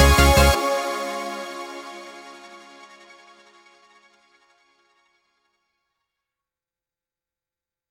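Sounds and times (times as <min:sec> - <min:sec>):
cinematic intro music: 0:00.0 - 0:03.6.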